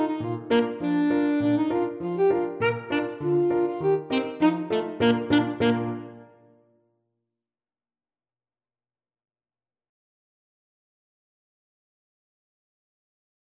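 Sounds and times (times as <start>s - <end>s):
polka played on saxophone: 0.0s - 6.5s.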